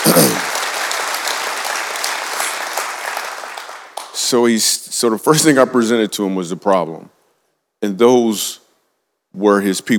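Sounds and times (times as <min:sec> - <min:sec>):
audience applause: 0:00.0 - 0:04.2
speech: 0:04.3 - 0:07.2, 0:07.8 - 0:08.6, 0:09.3 - 0:09.9.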